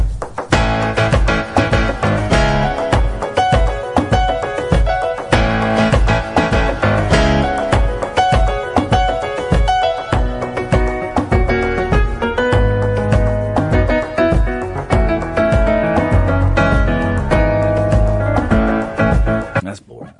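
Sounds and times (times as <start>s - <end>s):
piano playing through a repeating looper: 0.2s - 19.6s.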